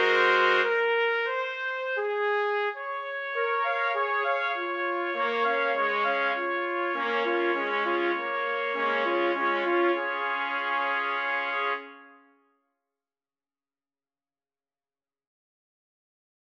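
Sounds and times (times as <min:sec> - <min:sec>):
trumpet quartet playing: 0:00.0 - 0:12.1.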